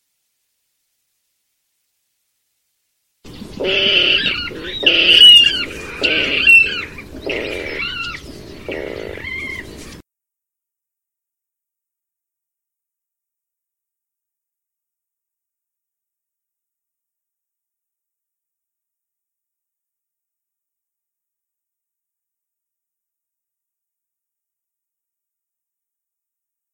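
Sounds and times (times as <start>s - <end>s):
water rail Rallus aquaticus calling: 3.3s - 10.0s.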